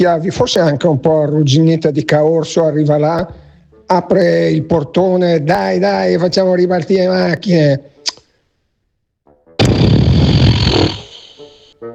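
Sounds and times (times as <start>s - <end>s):
speech: 0.0s - 7.9s
raspberry blown with the lips: 9.6s - 11.7s.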